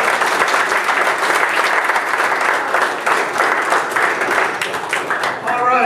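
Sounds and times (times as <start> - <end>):
audience applause for two honorees: 0.0 - 5.7.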